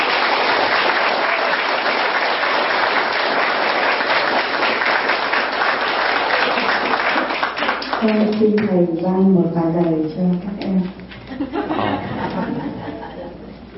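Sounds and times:
loud audience applause: 0.0s - 8.4s
speech: 8.0s - 11.7s
laughter: 11.2s - 13.7s.

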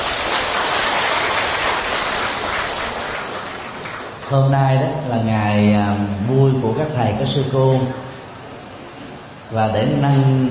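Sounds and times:
round of applause: 0.0s - 4.5s
speech: 4.3s - 8.0s, 9.5s - 10.4s.

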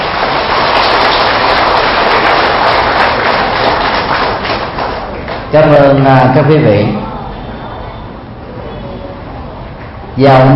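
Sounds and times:
audience applause: 0.0s - 5.5s
speech: 5.5s - 7.0s, 10.2s - 10.5s.

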